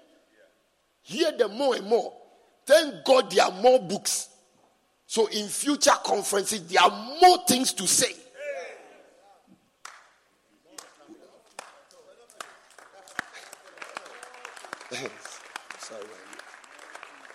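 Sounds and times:
speech: 1.1s - 4.3s, 5.1s - 8.2s
audience clapping: 9.8s - 17.3s.

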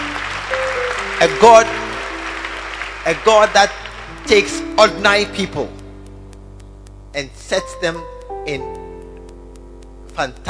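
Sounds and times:
audience clapping: 0.0s - 4.6s
speech: 1.2s - 1.8s, 3.0s - 5.8s, 7.1s - 8.8s, 10.2s - 10.4s.

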